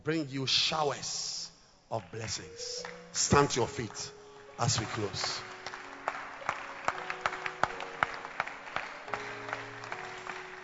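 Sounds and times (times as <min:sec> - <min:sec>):
speech: 0:00.0 - 0:05.5
group clapping hands in a steady rhythm: 0:01.9 - 0:10.6
soft sustained musical tones: 0:02.4 - 0:10.6.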